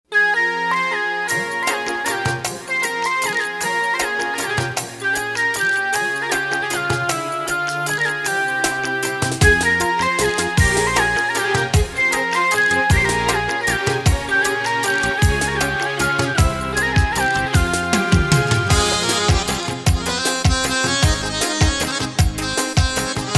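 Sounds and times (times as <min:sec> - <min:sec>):
instrumental music: 0:00.0 - 0:23.3.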